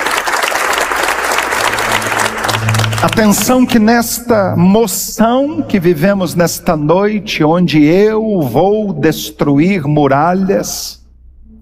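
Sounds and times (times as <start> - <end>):
audience applauding: 0.0 - 4.4
speech: 3.0 - 11.0.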